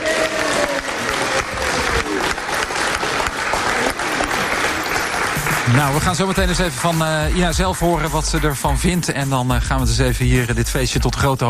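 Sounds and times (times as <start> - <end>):
audience applause: 0.0 - 7.4
speech: 5.7 - 11.4.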